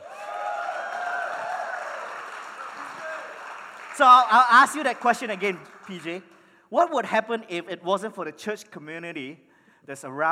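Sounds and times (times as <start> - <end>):
crowd cheering: 0.0 - 6.2
audience clapping: 0.0 - 6.4
speech: 4.0 - 10.2.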